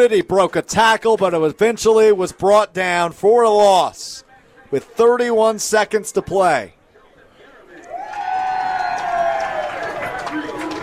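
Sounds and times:
speech: 0.0 - 6.8
football crowd cheering: 7.8 - 10.8.

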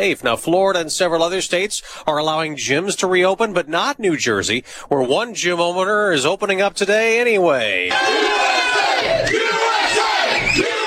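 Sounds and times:
speech: 0.0 - 9.4
crowd shouting and cheering outside a gym: 7.9 - 10.8.

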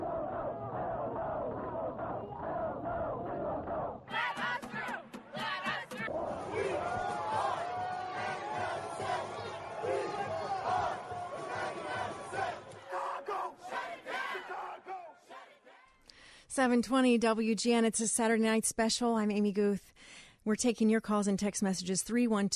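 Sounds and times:
large protest crowd chanting and shouting: 0.0 - 16.0
speech: 16.6 - 22.5.

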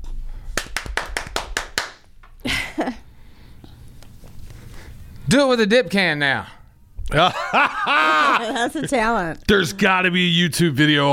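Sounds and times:
hand claps in a song: 0.6 - 2.1
speech: 2.4 - 3.0, 5.3 - 11.1
laughter: 7.1 - 9.2.

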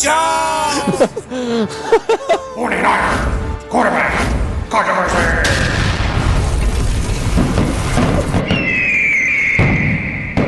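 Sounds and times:
speech: 0.0 - 5.8
laughter: 0.7 - 2.8
fireworks booming and crackling: 5.5 - 10.4
shrill descending fireworks whistle: 8.5 - 10.4.

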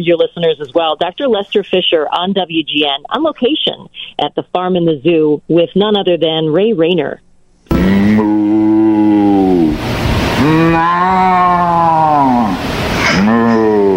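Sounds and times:
speech: 0.0 - 9.6, 10.4 - 12.6, 13.2 - 13.9
man imitating a cow's moo: 7.7 - 9.8, 10.4 - 13.9.

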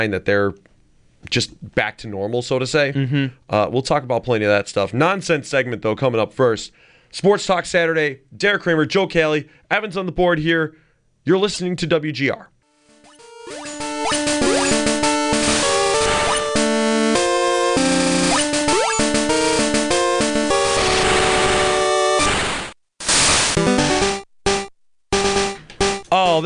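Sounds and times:
speech: 0.0 - 12.5
retro video game intro theme music: 12.8 - 22.4, 23.6 - 26.2.

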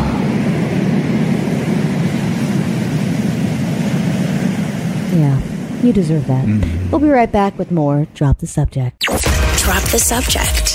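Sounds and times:
ocean waves: 0.0 - 7.2
speech: 5.2 - 10.7.

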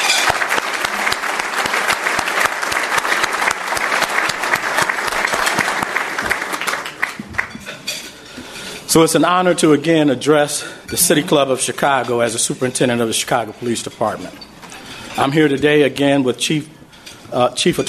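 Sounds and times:
audience applause: 0.0 - 7.7
speech: 8.9 - 14.5, 15.2 - 17.8.

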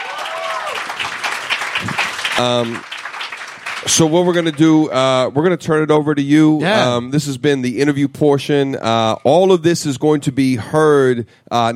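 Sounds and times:
audience applauding and cheering at a live event at the Soho House: 0.0 - 4.9
speech: 2.4 - 2.9, 3.8 - 11.7
person calling out: 6.6 - 7.0.

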